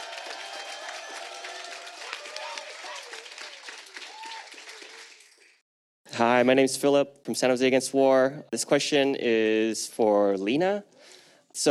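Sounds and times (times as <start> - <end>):
audience applause: 0.0 - 5.6
speech: 6.2 - 11.6.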